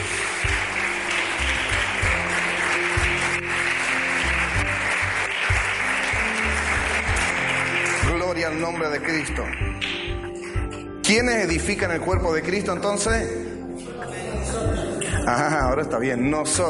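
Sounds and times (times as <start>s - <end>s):
audience applause: 0.0s - 10.6s
speech: 8.5s - 10.0s, 11.1s - 13.5s, 14.6s - 16.6s.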